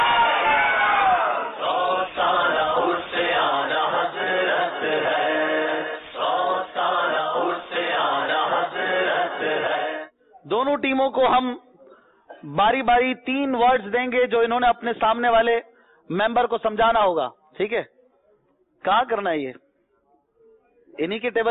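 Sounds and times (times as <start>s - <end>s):
crowd chanting a religious slogan in unison at a team competition event: 0.0s - 10.1s
speech: 10.8s - 11.7s, 12.4s - 18.0s, 18.8s - 19.6s, 21.0s - 21.5s.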